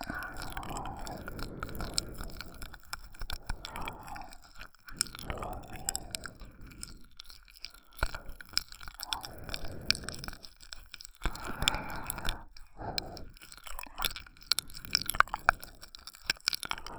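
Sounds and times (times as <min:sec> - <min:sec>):
whispering: 0:00.0 - 0:02.6, 0:03.6 - 0:06.4
ear licking: 0:00.0 - 0:16.9.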